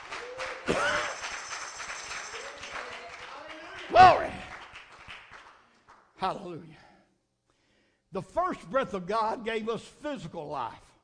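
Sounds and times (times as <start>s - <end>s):
audience hand clapping: 0.0s - 6.2s
speech: 3.9s - 4.3s, 6.3s - 6.8s, 8.1s - 10.9s.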